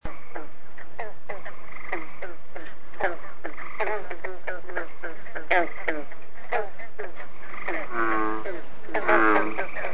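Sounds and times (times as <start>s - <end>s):
frogs croaking in rasping pulsed bursts: 0.0s - 9.9s.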